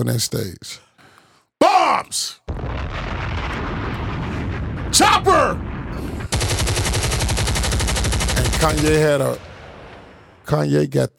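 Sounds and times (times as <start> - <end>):
speech: 0.0 - 0.9, 2.0 - 3.1, 4.9 - 6.1, 8.6 - 9.5, 10.5 - 11.1
low rumble: 2.6 - 10.5
machine gun automatic gunfire: 6.3 - 10.2.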